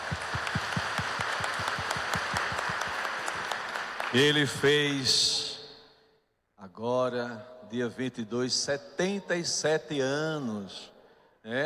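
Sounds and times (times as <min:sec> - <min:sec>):
audience applause: 0:00.0 - 0:04.8
speech: 0:04.1 - 0:05.5, 0:06.8 - 0:11.6.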